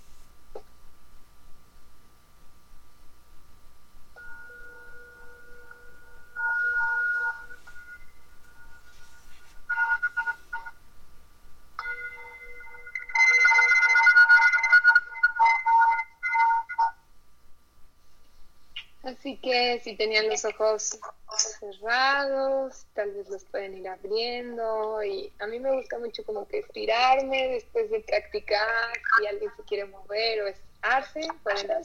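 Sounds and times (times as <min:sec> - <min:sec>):
meditation bell ringing: 0:04.2 - 0:10.7, 0:11.8 - 0:16.9
speech: 0:19.2 - 0:21.2, 0:21.8 - 0:31.8.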